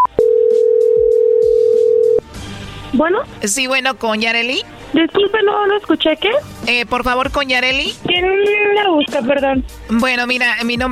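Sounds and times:
telephone dial tone while calling: 0:00.0 - 0:02.2
speech: 0:03.0 - 0:10.9.

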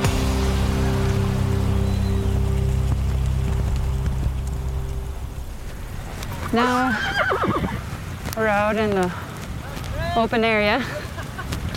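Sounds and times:
dust storm wind: 0:00.0 - 0:11.7
speech: 0:06.5 - 0:07.5, 0:08.4 - 0:09.3, 0:10.1 - 0:11.0.

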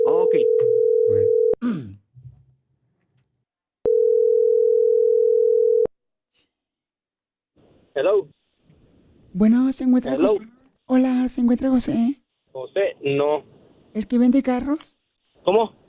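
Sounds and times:
phone line's ringback tone while a call connects: 0:00.0 - 0:01.6, 0:03.9 - 0:05.9
brief voice sounds: 0:01.1 - 0:02.1
speech: 0:08.0 - 0:08.4, 0:09.4 - 0:15.8.

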